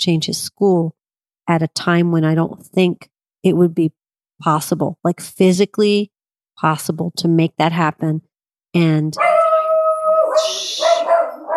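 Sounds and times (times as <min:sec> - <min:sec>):
speech: 0:00.0 - 0:09.4, 0:10.4 - 0:11.2
dog whining, yelping and barking: 0:09.2 - 0:11.5.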